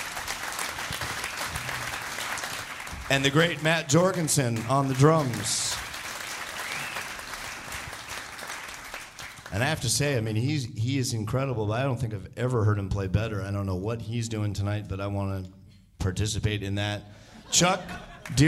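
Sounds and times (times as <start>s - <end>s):
audience applause: 0.0s - 9.6s
speech: 3.1s - 5.8s, 9.6s - 18.4s
laughter: 17.3s - 18.4s.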